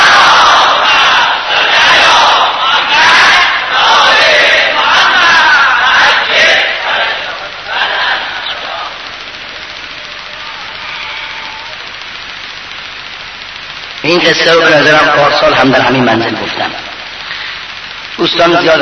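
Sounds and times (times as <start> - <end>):
congregation chanting salawat in unison: 0.0 - 9.3
speech: 14.2 - 16.9, 18.2 - 18.8.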